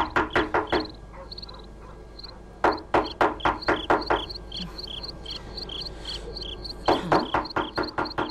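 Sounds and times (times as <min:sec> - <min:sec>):
knocking on a door: 0:00.0 - 0:00.9, 0:02.6 - 0:04.4, 0:06.9 - 0:08.2
insect-like chirping: 0:00.3 - 0:08.2.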